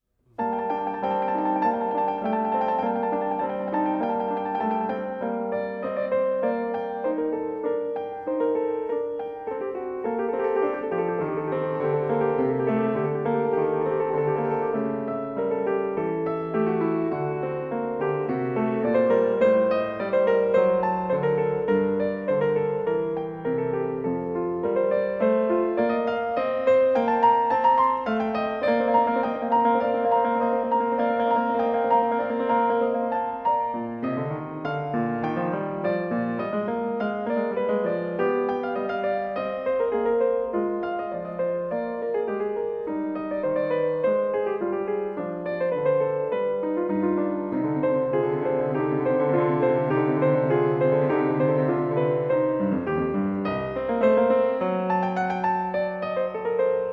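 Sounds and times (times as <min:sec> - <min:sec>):
prelude and fugue in G minor: 0:00.0 - 0:56.9.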